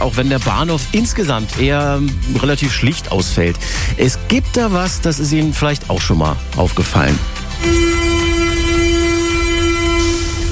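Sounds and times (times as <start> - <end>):
speech: 0.0 - 8.0
U-Bahn train electric whine at underground station platform: 7.6 - 10.5.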